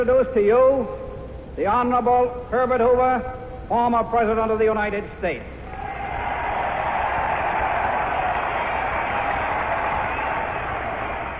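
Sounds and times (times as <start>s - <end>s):
speech: 0.0s - 5.6s
convention audience cheering: 5.7s - 11.3s.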